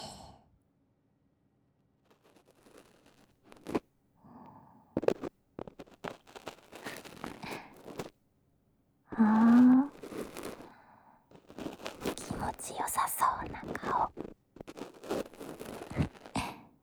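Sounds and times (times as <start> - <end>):
ear cleaning in the left ear, ASMR: 2.5 - 8.1, 9.1 - 16.7
squeezing sound, ASMR: 5.0 - 8.1, 9.2 - 16.6.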